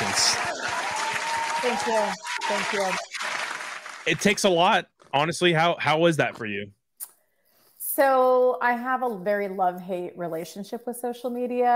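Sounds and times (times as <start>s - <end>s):
people clapping: 0.0s - 4.8s
speech: 1.6s - 3.1s, 4.0s - 6.8s, 8.0s - 11.7s.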